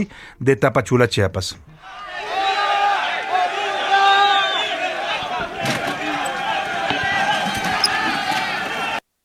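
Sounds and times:
speech: 0.0 - 2.1
clash between National Guard and migrant crowd: 3.1 - 9.0.

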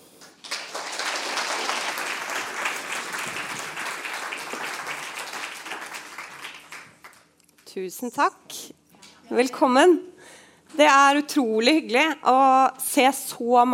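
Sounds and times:
audience applause: 0.0 - 7.3
speech: 7.8 - 10.1, 10.7 - 13.7.

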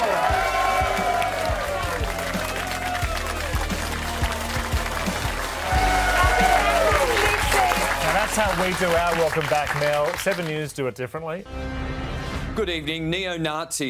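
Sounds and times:
audience applause for a comedian: 0.0 - 10.7
speech: 8.4 - 11.9, 12.6 - 13.8.

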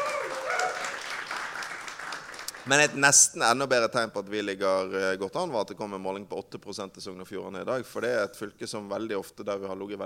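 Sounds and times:
applause at a Norwegian political gathering celebrating poll results: 0.0 - 3.3
speech: 2.6 - 10.0.

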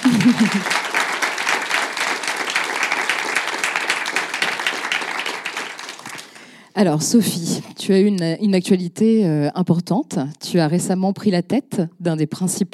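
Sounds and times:
laughter: 0.0 - 1.0
audience applause: 0.0 - 6.6
speech: 0.2 - 0.9, 6.8 - 12.7.

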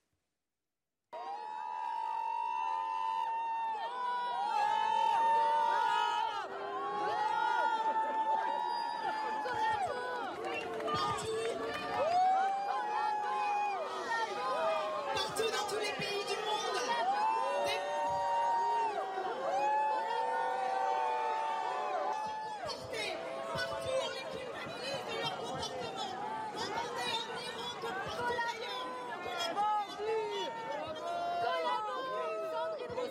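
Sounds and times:
large crowd booing and shouting at a street demonstration: 1.2 - 33.0.

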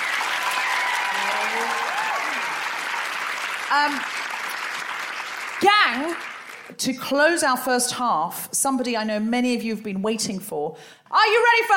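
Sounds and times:
live audience applause: 0.0 - 6.8
speech: 3.7 - 4.2, 5.6 - 11.7.

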